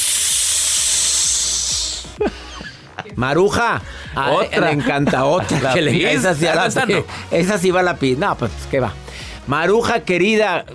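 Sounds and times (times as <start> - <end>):
stage smoke machine hissing: 0.0 - 2.2
speech: 3.0 - 10.7
laughter: 4.2 - 7.1.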